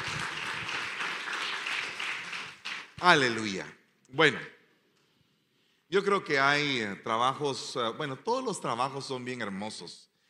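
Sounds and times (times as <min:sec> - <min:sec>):
audience applause: 0:00.0 - 0:03.4
speech: 0:03.0 - 0:04.6, 0:05.9 - 0:10.1.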